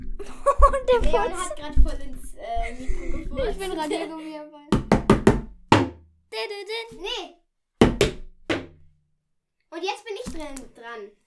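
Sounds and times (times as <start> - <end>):
laughter: 0.2 - 1.7, 2.4 - 4.4
speech: 0.4 - 4.7, 6.3 - 7.4, 9.7 - 11.2
person toppling over with a drum: 4.8 - 6.1, 7.8 - 8.9.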